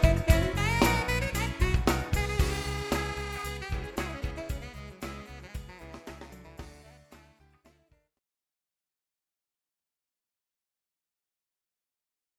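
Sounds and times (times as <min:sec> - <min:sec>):
variety band playing: 0:00.0 - 0:07.5.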